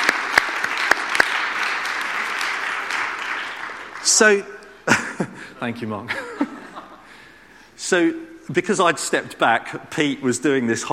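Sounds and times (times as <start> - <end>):
audience applause: 0.0 - 4.4
speech: 4.1 - 6.6, 7.8 - 10.9
laughter: 4.9 - 7.2.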